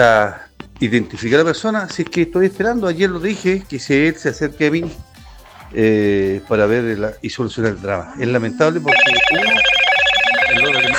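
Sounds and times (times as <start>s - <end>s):
speech: 0.0s - 5.1s, 5.7s - 9.7s
telephone ringing: 8.9s - 10.9s.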